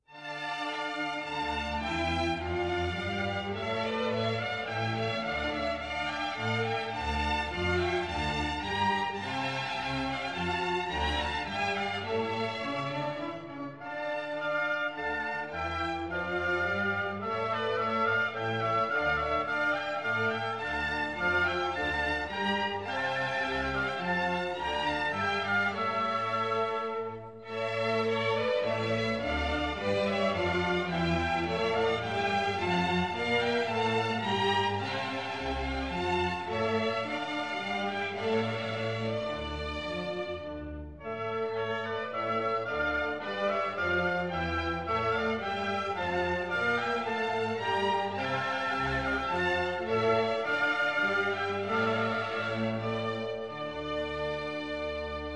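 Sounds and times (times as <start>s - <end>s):
orchestral minuet: 0.0s - 55.3s.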